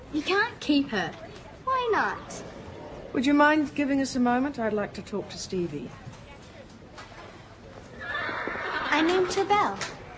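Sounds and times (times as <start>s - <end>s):
people talking softly: 0.0s - 10.1s
speech: 0.1s - 1.2s, 1.8s - 6.1s, 9.0s - 10.1s
mare whinnying: 8.0s - 9.1s.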